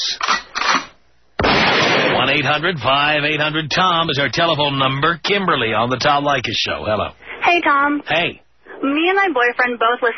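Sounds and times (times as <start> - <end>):
gunshot: 1.4 - 2.4
speech: 2.4 - 10.1.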